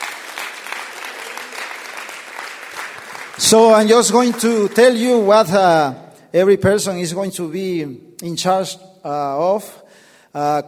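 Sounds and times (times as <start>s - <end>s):
audience applause: 0.0s - 5.3s
speech: 3.4s - 10.6s.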